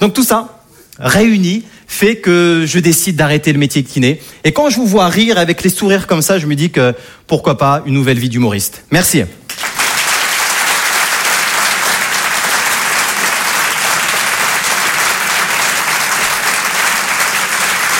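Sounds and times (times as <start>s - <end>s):
speech: 0.0s - 9.7s
audience applause: 9.5s - 17.9s.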